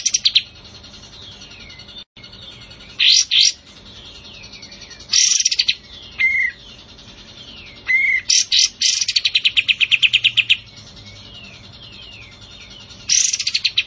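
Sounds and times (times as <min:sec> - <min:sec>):
Cream-vented Bulbul uttering brief loud scratchy bursts: 0:02.7 - 0:10.7, 0:11.6 - 0:13.8.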